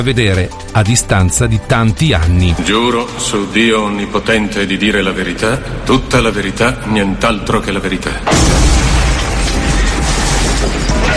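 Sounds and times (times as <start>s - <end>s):
speech: 0.0s - 8.7s
bomb explosion in a pub in Guildford: 8.3s - 11.1s.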